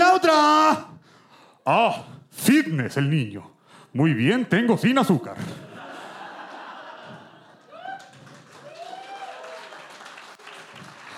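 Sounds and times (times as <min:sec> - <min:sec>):
speech: 0:01.6 - 0:05.6
audience whoops and laughs: 0:06.4 - 0:09.8
audience clapping: 0:06.7 - 0:11.1.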